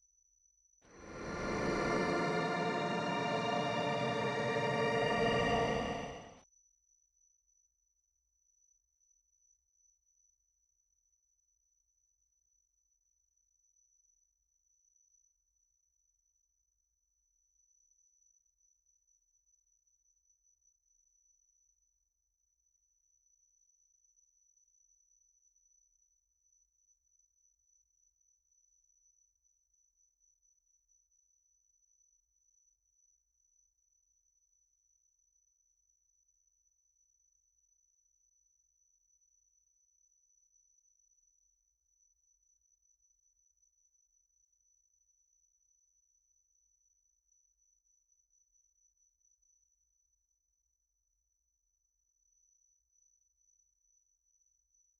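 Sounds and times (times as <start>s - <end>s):
brass instruments: 1.1s - 6.3s.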